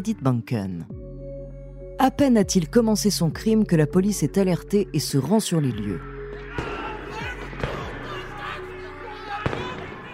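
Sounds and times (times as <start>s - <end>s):
speech: 0.0s - 1.0s, 2.0s - 6.1s
gunfire shootout: 6.6s - 8.2s, 9.4s - 10.1s.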